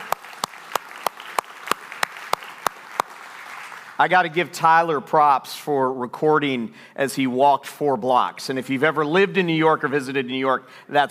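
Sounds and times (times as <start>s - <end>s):
audience applause: 0.0s - 4.1s
speech: 4.0s - 11.1s.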